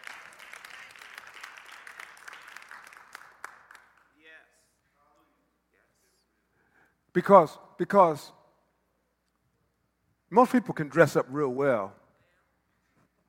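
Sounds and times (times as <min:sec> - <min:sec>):
audience clapping along: 0:00.0 - 0:04.2
speech: 0:07.2 - 0:08.4, 0:10.3 - 0:12.0.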